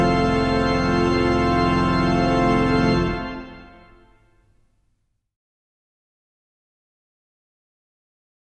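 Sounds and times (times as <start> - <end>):
organ music: 0.0 - 4.3.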